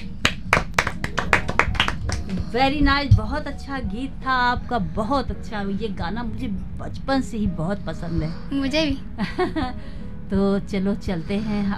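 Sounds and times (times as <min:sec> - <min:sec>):
hands clapping after a song on a Hindi show: 0:00.0 - 0:02.5
speech: 0:02.5 - 0:11.7.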